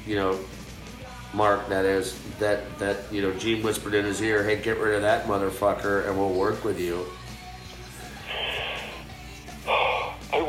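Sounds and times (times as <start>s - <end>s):
speech: 0.0s - 0.6s, 1.3s - 7.2s
person yawning: 9.7s - 10.3s.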